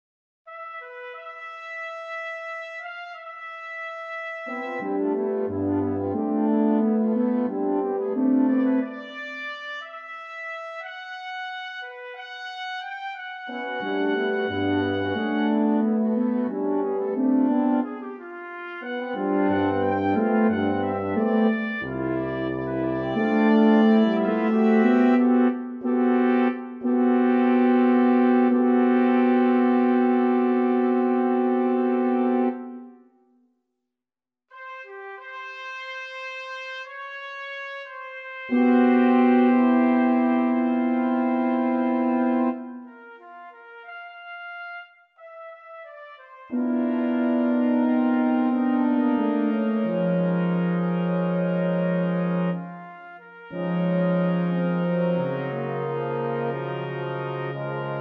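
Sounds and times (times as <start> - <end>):
Air Force brass band playing: 2.8 - 10.0, 12.8 - 32.7, 34.6 - 42.6, 45.8 - 57.9.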